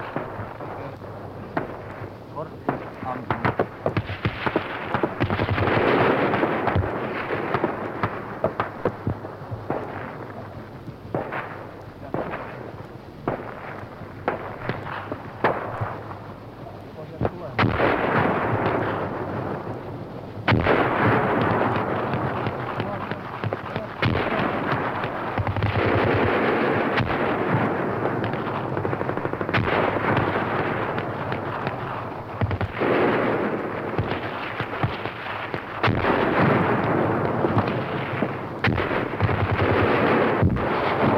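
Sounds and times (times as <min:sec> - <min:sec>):
heavy artillery and mortar blasts: 0:00.0 - 0:41.1
rifle and machine-gun fire: 0:01.6 - 0:10.5, 0:11.1 - 0:16.2, 0:17.0 - 0:19.8, 0:20.4 - 0:41.1.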